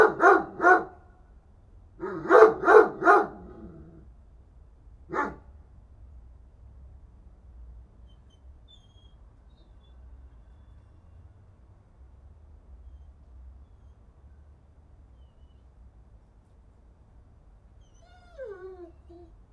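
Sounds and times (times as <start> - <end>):
dog barking: 0.0 - 1.0, 2.0 - 4.0, 5.1 - 5.4.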